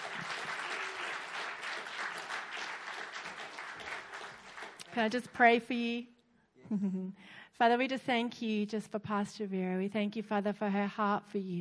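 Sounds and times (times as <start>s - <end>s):
church congregation clapping to welcome a pastor: 0.0s - 5.3s
speech: 5.0s - 11.5s.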